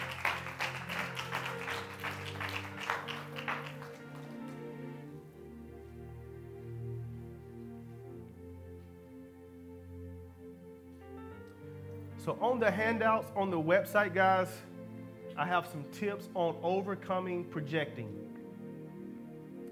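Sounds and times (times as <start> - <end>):
audience clapping hands: 0.0 - 5.0
speech: 12.2 - 14.7, 15.4 - 18.3.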